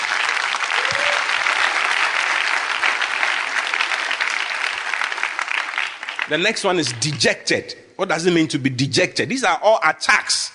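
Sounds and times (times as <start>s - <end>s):
audience applause: 0.0s - 7.2s
speech: 6.3s - 10.5s.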